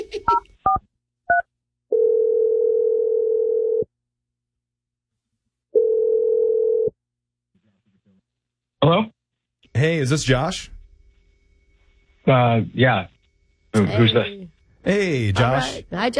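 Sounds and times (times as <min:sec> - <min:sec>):
long steady mid-pitched telephone tones: 0:01.3 - 0:03.9, 0:05.7 - 0:07.0, 0:09.7 - 0:12.4
speech: 0:09.8 - 0:10.8, 0:12.3 - 0:13.1, 0:13.8 - 0:16.1.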